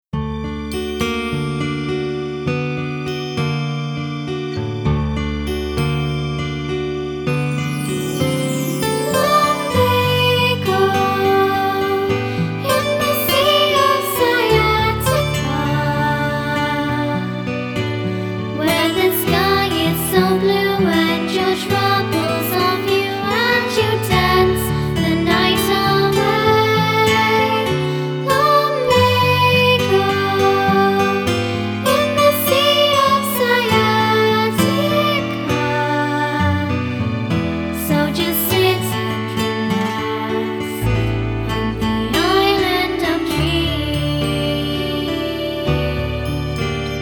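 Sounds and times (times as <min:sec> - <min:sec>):
lullaby song: 0:00.3 - 0:47.0.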